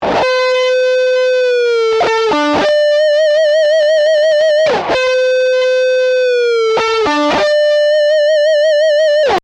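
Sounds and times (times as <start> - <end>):
guitar prebend: 0.0 - 9.4.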